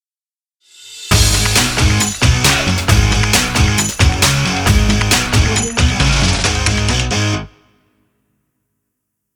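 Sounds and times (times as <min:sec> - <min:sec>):
sports intro music: 0:01.1 - 0:07.7.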